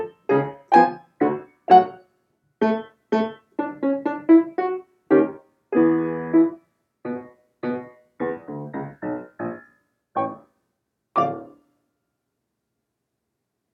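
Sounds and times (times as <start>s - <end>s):
piano improvisation in D minor: 0.0s - 2.0s, 2.6s - 10.5s, 11.2s - 11.6s.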